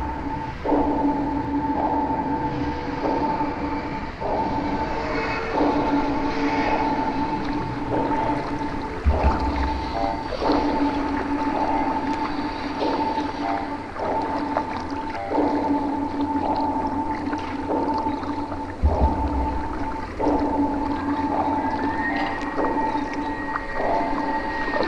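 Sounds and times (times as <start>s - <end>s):
paddling noises composition: 0.0s - 24.8s.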